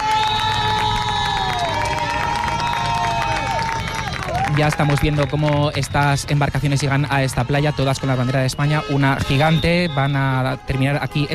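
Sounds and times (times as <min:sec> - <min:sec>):
crowd applauding passing police, soldiers and cleaning crews: 0:00.0 - 0:08.8
speech: 0:04.6 - 0:11.3.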